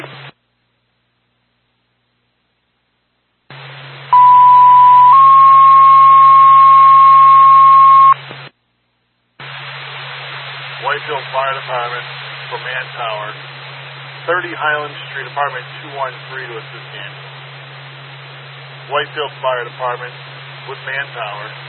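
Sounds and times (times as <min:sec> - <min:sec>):
fire department dispatch alert tone: 0:04.2 - 0:08.2
speech: 0:14.6 - 0:17.4, 0:18.9 - 0:21.6.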